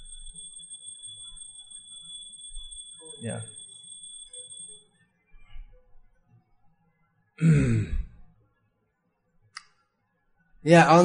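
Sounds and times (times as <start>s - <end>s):
small bell rung quietly: 0.0s - 5.0s
speech: 3.2s - 3.6s, 10.7s - 11.0s.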